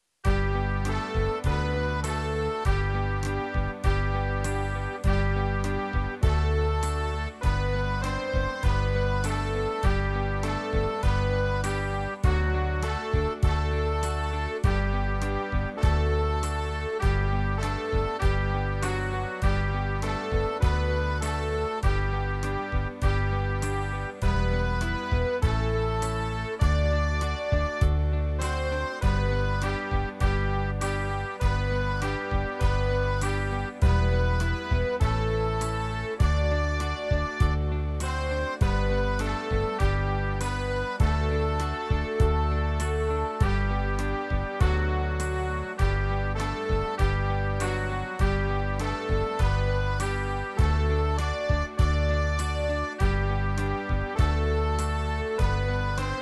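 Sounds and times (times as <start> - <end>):
trumpets playing: 0.2 - 56.2.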